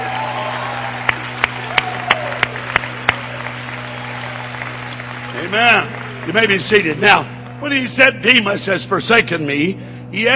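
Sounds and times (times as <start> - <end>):
audience clapping and cheering: 0.0 - 7.9
speech: 5.5 - 10.3.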